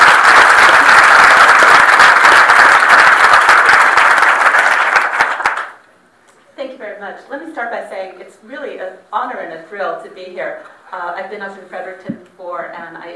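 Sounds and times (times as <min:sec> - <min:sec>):
audience applause: 0:00.0 - 0:05.8
speech: 0:07.3 - 0:13.1.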